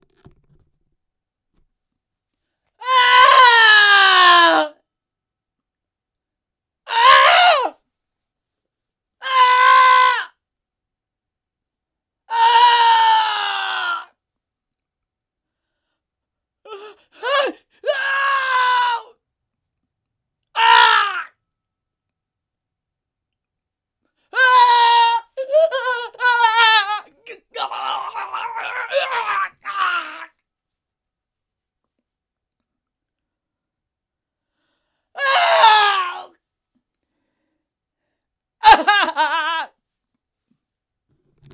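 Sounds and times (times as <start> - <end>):
person screaming: 2.8 - 4.8, 6.9 - 7.7, 9.2 - 10.4, 12.3 - 14.1, 16.7 - 19.1, 20.6 - 21.3, 24.3 - 30.4, 35.2 - 36.3, 38.6 - 39.8.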